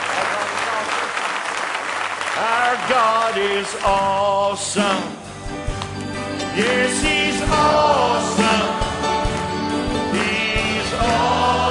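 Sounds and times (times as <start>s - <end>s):
congregation clapping in praise at a church camp meeting: 0.0s - 5.1s, 8.4s - 11.6s
speech: 2.4s - 5.2s, 6.6s - 8.8s.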